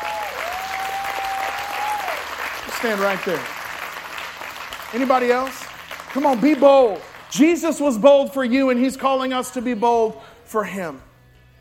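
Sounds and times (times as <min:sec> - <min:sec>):
audience hand clapping: 0:00.0 - 0:07.8
speech: 0:02.8 - 0:03.6, 0:04.9 - 0:11.1.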